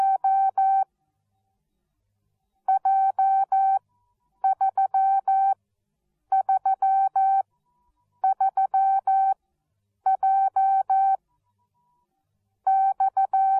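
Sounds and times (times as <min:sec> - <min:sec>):
morse code beeps: 0:00.0 - 0:00.8, 0:02.7 - 0:03.8, 0:04.4 - 0:05.6, 0:06.4 - 0:07.4, 0:08.2 - 0:09.4, 0:10.1 - 0:11.2, 0:12.7 - 0:13.5.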